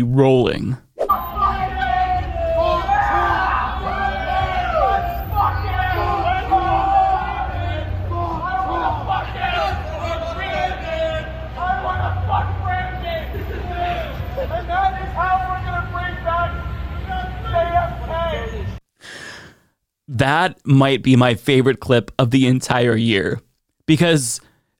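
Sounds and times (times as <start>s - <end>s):
speech: 0.0s - 0.8s, 20.2s - 24.7s
crowd chanting: 1.1s - 18.1s.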